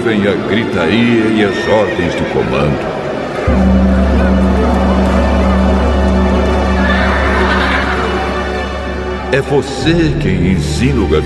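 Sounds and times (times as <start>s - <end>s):
speech: 0.1s - 3.8s, 9.3s - 11.2s
horses neighing: 0.9s - 3.0s, 6.6s - 9.1s
laughter: 4.3s - 9.7s.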